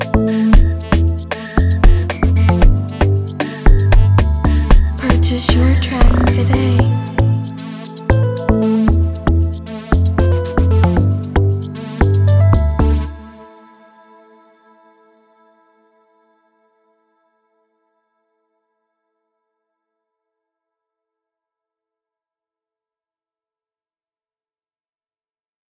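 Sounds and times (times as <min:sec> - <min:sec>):
amapiano instrumental music in C major at 115 bpm: 0:00.0 - 0:13.4.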